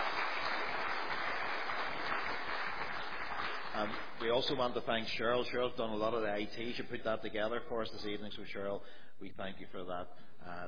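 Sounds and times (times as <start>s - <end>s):
audience applause: 0.0s - 4.2s
speech: 3.8s - 10.6s.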